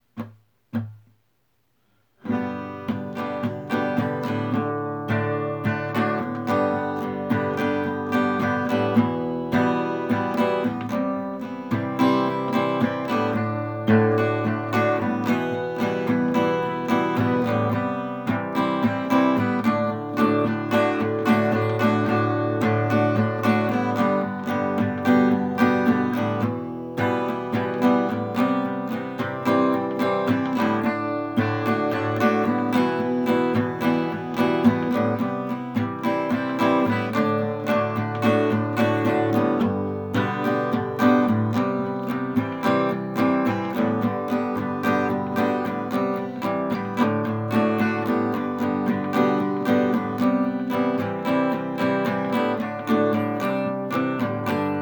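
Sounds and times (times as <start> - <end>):
acoustic music: 0.0 - 54.8.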